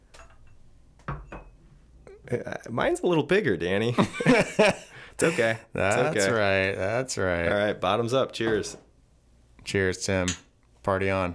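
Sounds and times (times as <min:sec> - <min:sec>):
glasses clinking: 0:00.2 - 0:01.6, 0:10.2 - 0:10.5
speech: 0:02.3 - 0:08.8, 0:09.6 - 0:11.3
laughter: 0:04.0 - 0:06.4.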